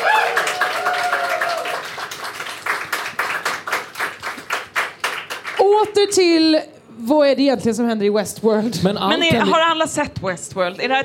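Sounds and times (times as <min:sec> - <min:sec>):
audience applause: 0:00.0 - 0:05.7
speech: 0:05.8 - 0:11.0.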